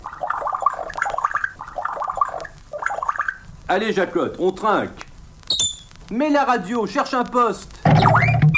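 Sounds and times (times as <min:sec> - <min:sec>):
voice imitating pouring a drink: 0:00.0 - 0:03.4
speech: 0:03.7 - 0:05.0, 0:06.1 - 0:08.4.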